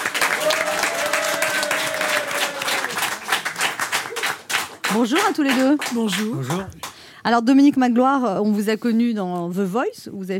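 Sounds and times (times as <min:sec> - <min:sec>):
audience applause: 0:00.0 - 0:07.0
speech: 0:04.9 - 0:10.3.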